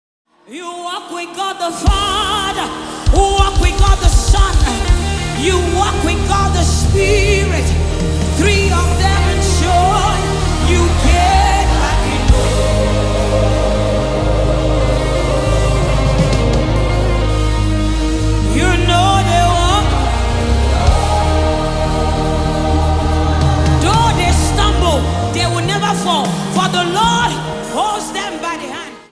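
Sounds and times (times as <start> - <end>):
live backing track: 0.5 - 29.1.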